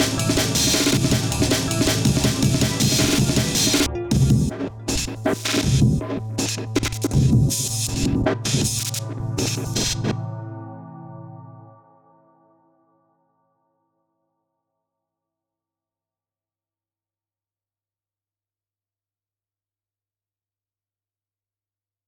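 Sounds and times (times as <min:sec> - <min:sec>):
breakbeat drums: 0:00.0 - 0:10.2.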